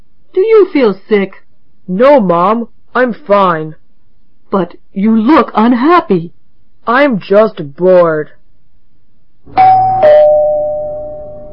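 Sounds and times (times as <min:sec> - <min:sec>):
low hum: 0:00.0 - 0:11.5
speech: 0:00.7 - 0:03.8, 0:04.5 - 0:08.4, 0:09.5 - 0:10.2
doorbell ringing ding-dong: 0:09.6 - 0:11.5.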